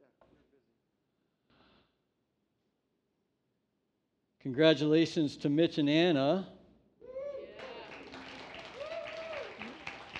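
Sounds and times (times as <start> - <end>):
speech: 4.4 - 6.5
high drawn-out cheers and whoops: 7.0 - 10.1
audience clapping: 7.6 - 10.1.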